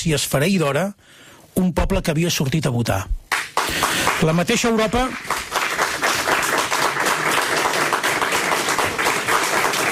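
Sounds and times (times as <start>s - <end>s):
speech: 0.0s - 5.4s
audience applause in a hall: 3.3s - 9.9s.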